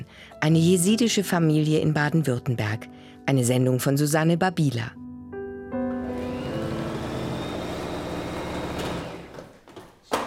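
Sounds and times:
speech: 0:00.4 - 0:05.0
electric sewing machine stitching: 0:05.9 - 0:09.6.

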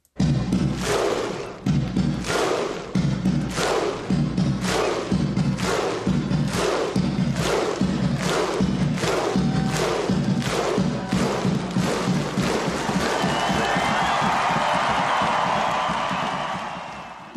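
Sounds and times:
huge crowd of Icelandic fans clapping in rhythm: 0:00.0 - 0:17.3.

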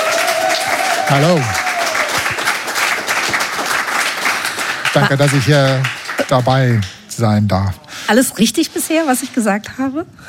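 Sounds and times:
audience applause: 0:00.0 - 0:07.0
speech: 0:01.1 - 0:01.6, 0:05.0 - 0:10.2.

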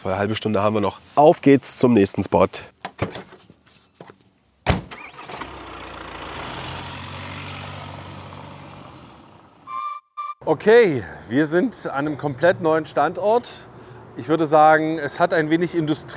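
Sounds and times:
speech: 0:00.0 - 0:03.3, 0:10.5 - 0:16.1
traffic rumble on a busy bridge overhead: 0:02.6 - 0:09.7, 0:10.4 - 0:16.1.

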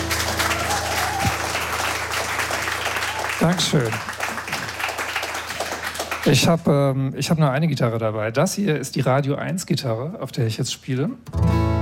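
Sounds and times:
audience applause: 0:00.0 - 0:06.7
speech: 0:03.4 - 0:04.1, 0:06.2 - 0:11.7.

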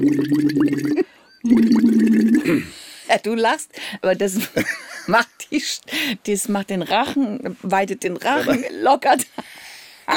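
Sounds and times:
gurgling bubbles through tube into water-filled glass vessel: 0:00.0 - 0:02.6
humming blown through a tube into water-filled glass vessel: 0:00.0 - 0:02.6
speech: 0:03.2 - 0:09.5.

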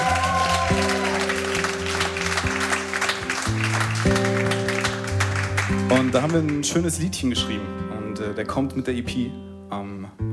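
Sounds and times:
audience applause: 0:00.0 - 0:06.6
speech: 0:06.2 - 0:10.2.

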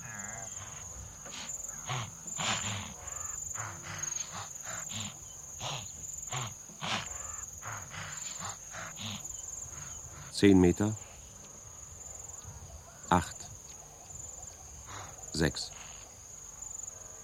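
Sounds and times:
wildebeest herd warning snorts: 0:00.0 - 0:11.2, 0:14.8 - 0:16.0
speech: 0:10.4 - 0:11.1, 0:13.1 - 0:13.4, 0:15.4 - 0:15.8.

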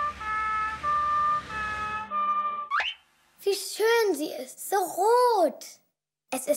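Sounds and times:
fire engine rumble: 0:00.0 - 0:02.6
fire engine siren driving past: 0:00.0 - 0:02.9
speech: 0:03.5 - 0:06.5.

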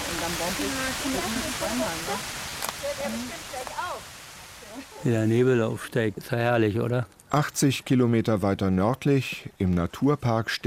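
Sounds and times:
heavy rain shower in a forest: 0:00.0 - 0:05.6
speech: 0:00.3 - 0:10.6.

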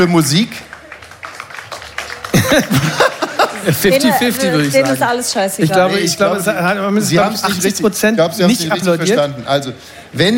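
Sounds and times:
speech: 0:00.0 - 0:00.7, 0:02.5 - 0:10.3
crowd clapping as an applause vote: 0:00.0 - 0:05.7
laughter: 0:02.1 - 0:05.0, 0:07.1 - 0:10.3.

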